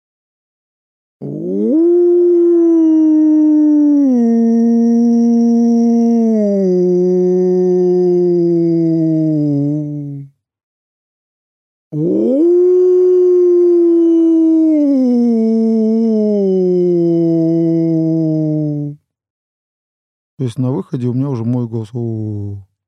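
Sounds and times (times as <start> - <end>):
person imitating a wolf howl: 1.2 - 10.3, 11.9 - 19.0
speech: 20.4 - 22.7.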